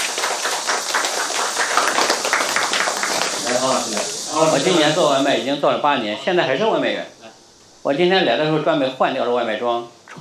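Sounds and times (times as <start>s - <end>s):
audience applause: 0.0s - 5.3s
speech: 3.6s - 7.2s, 7.8s - 10.1s.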